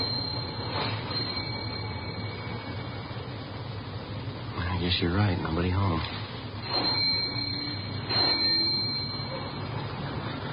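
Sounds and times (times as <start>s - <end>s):
doorbell ringing: 0.0s - 3.6s, 6.6s - 10.4s
speech: 4.9s - 7.1s.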